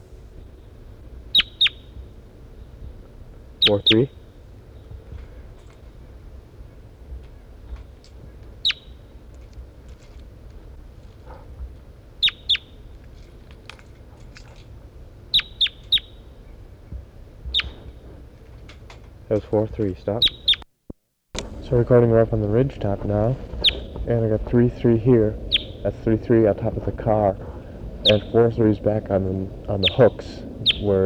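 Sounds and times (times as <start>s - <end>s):
recorded bird giving high-pitched chirps: 0.0s - 6.0s, 7.8s - 9.4s, 12.1s - 13.4s, 15.2s - 18.1s, 19.3s - 20.7s, 21.4s - 31.0s
low steady rumble: 0.0s - 20.6s, 21.4s - 31.0s
speech: 3.7s - 4.2s, 19.3s - 20.4s, 21.7s - 31.0s.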